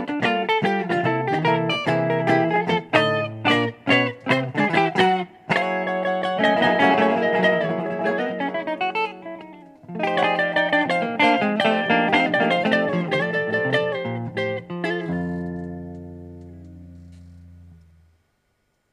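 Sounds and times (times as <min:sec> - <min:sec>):
two-way guitar amplifier: 0:00.0 - 0:18.2.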